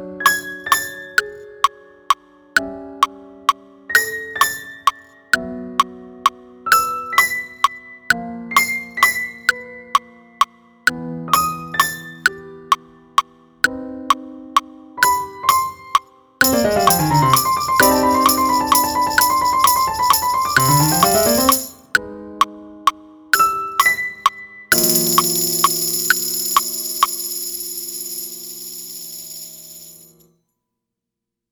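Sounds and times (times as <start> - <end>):
piano: 0.0 - 13.4, 14.1 - 28.5
tambourine: 15.0 - 21.9, 24.7 - 30.2.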